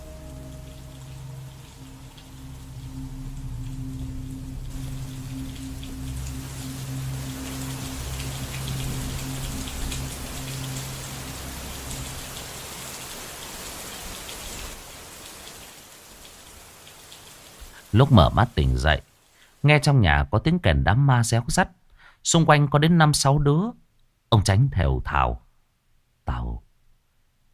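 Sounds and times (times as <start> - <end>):
low sustained hum: 0.0 - 13.0
heavy pouring rain: 0.0 - 19.7
speech: 17.9 - 25.4.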